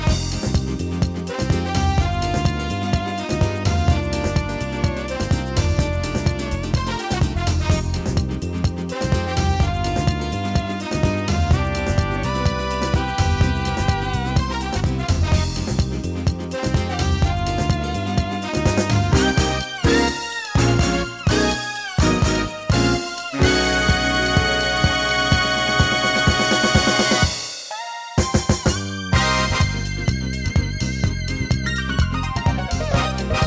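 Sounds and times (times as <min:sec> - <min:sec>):
Casio CTK-6200 electronic keyboard: 0:00.1 - 0:33.4.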